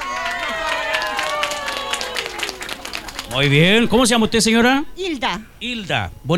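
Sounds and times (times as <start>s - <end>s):
audience applause: 0.0s - 4.8s
speech: 3.3s - 6.3s.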